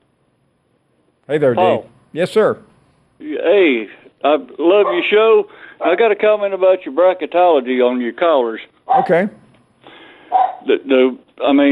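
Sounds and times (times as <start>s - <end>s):
speech: 1.3s - 9.4s, 10.6s - 11.7s
dog barking: 4.8s - 5.2s, 8.9s - 9.2s, 10.3s - 10.7s.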